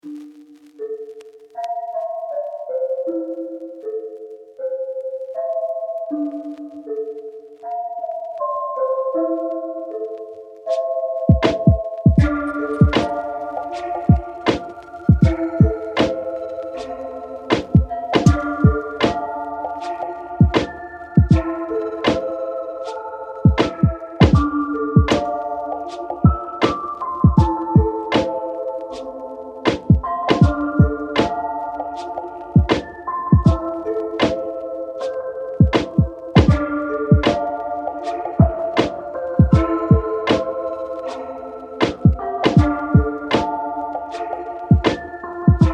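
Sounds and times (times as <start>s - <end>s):
lofi hip hop with Javanese mallets: 0.1s - 45.7s.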